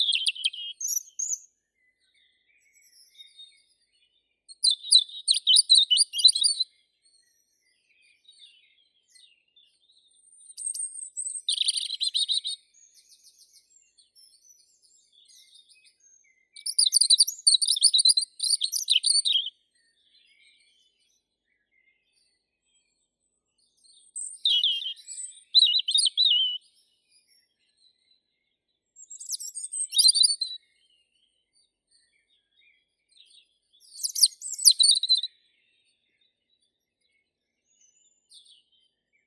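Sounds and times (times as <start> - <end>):
European robin Erithacus rubecula singing: 0.0 - 6.7, 7.7 - 19.6, 23.6 - 27.5, 29.0 - 30.8, 32.3 - 35.7.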